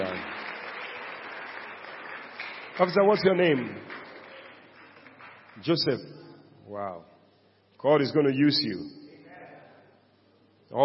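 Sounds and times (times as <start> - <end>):
audience clapping: 0.0 - 6.0
speech: 2.8 - 4.0, 5.6 - 7.1, 7.8 - 9.0.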